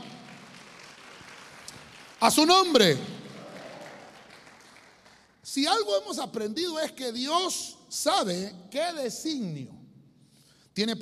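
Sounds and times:
applause: 0.0 - 5.4
speech: 2.2 - 3.1, 5.5 - 9.8, 10.8 - 10.9.

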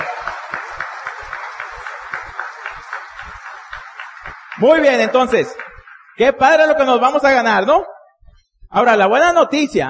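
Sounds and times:
applause: 0.0 - 7.5
speech: 4.6 - 5.6, 6.2 - 7.9, 8.7 - 9.8.

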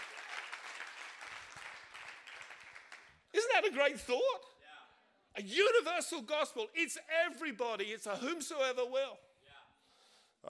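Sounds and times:
audience applause: 0.0 - 3.2
speech: 3.6 - 4.5, 5.4 - 9.3.

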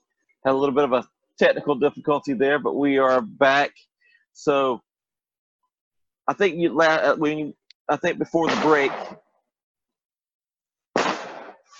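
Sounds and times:
speech: 0.4 - 4.9, 6.3 - 9.2
fireworks bang outside: 8.4 - 9.2, 10.9 - 11.7
fireworks crackling and fizzing: 11.0 - 11.7.

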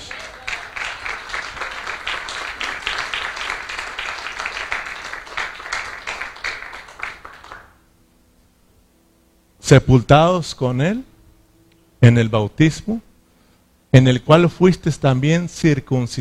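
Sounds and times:
audience applauding: 0.0 - 7.8
speech: 9.7 - 11.1, 12.0 - 13.1, 13.9 - 16.1.

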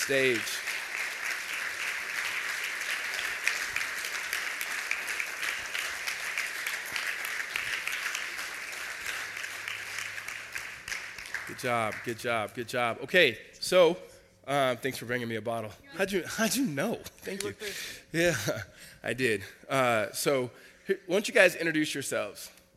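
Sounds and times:
speech: 0.0 - 0.7, 11.5 - 22.6
church audience clapping: 0.0 - 12.9.

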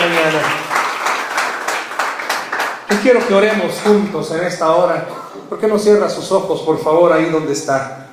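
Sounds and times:
audience applause: 0.0 - 3.9
speech: 0.2 - 0.7, 2.9 - 8.0.

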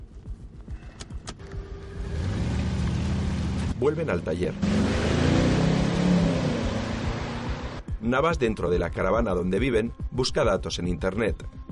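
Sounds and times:
car engine accelerating in an action driving scene: 1.4 - 7.8
speech: 3.8 - 5.1, 8.0 - 11.6.

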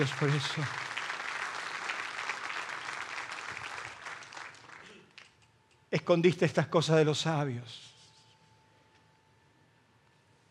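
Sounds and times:
speech: 0.0 - 0.8, 5.9 - 7.9
audience applause: 0.0 - 5.2.

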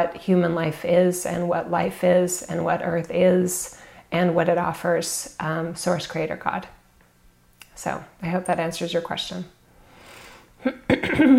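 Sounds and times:
speech: 0.0 - 6.8, 7.8 - 9.6, 10.6 - 11.3
cough: 10.6 - 11.3
throat clearing: 10.6 - 11.3.

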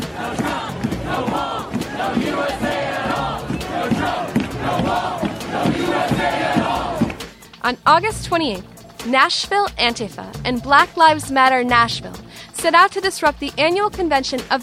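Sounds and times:
crowd chanting at an anti-fascist demonstration: 0.0 - 7.3
speech: 7.6 - 14.6.

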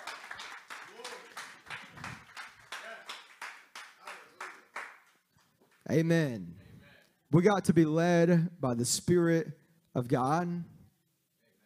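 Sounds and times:
audience hand clapping in praise: 0.0 - 5.9
speech: 5.9 - 6.6, 7.3 - 10.8.

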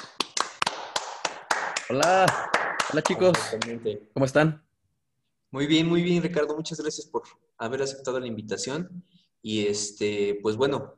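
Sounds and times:
audience applause welcoming a guest: 0.0 - 3.7
speech: 1.9 - 4.6, 5.5 - 10.9.

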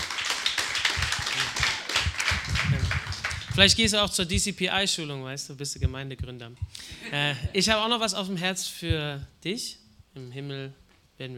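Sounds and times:
small audience clapping: 0.0 - 4.2
faint low murmuring: 0.9 - 4.5
speech: 3.6 - 11.3.

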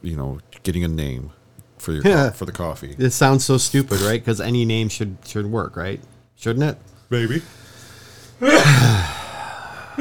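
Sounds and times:
speech: 0.0 - 7.6, 8.4 - 9.2
person sneezing: 3.7 - 4.2, 8.4 - 9.2.

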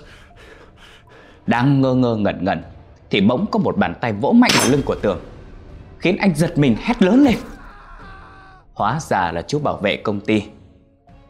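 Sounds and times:
person panting, gasping for breath: 0.0 - 1.4
speech: 1.5 - 5.3, 6.0 - 7.5, 8.8 - 10.6.

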